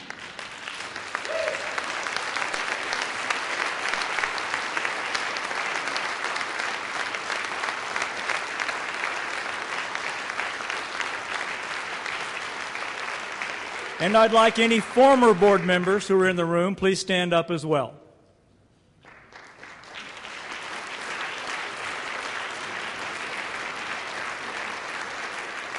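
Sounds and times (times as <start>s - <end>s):
audience applause: 0.0s - 16.4s, 19.0s - 25.7s
speech: 14.0s - 18.0s.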